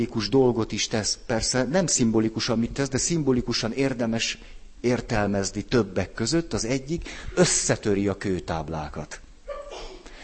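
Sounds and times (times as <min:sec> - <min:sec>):
speech: 0:00.0 - 0:09.2
sneeze: 0:09.5 - 0:10.2.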